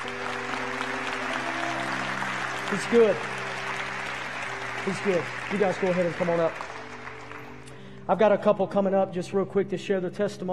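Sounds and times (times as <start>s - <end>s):
audience hand clapping: 0.0s - 7.9s
speech: 2.7s - 3.4s, 4.8s - 6.7s, 8.1s - 10.5s.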